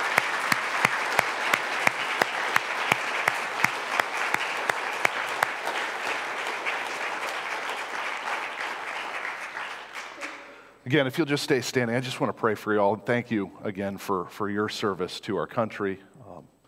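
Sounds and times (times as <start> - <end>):
audience applause: 0.0 - 10.6
speech: 10.9 - 16.1.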